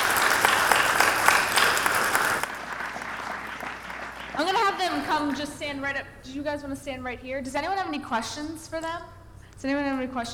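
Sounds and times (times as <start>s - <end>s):
audience applause: 0.0s - 5.4s
speech: 5.2s - 10.3s.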